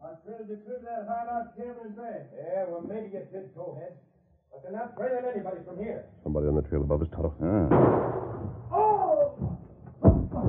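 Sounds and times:
speech: 0.4s - 9.6s
gunshot: 7.7s - 8.8s.

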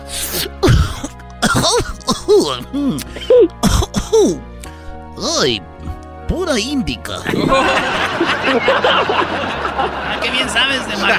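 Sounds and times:
person playing a costumed dinosaur character coughing raspily: 0.3s - 4.4s
speech: 1.6s - 4.5s, 5.2s - 5.7s, 6.4s - 11.1s
laughter: 7.2s - 11.1s.

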